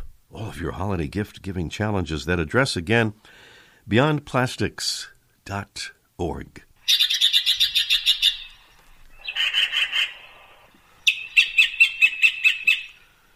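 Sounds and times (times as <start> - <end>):
speech: 0.5 - 7.2
Yellow-billed Magpie chatter: 6.8 - 8.6, 9.2 - 13.0.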